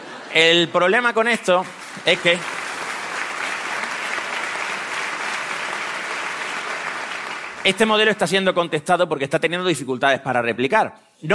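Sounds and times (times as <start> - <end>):
speech: 0.3 - 2.5, 7.6 - 11.3
audience applause: 0.8 - 8.4.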